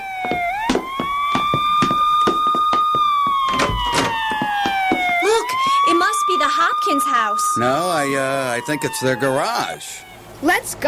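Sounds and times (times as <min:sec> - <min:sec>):
fire engine siren wailing: 0:00.0 - 0:10.4
sharp irregular thumps and clatters: 0:00.2 - 0:05.2
speech: 0:06.9 - 0:10.8.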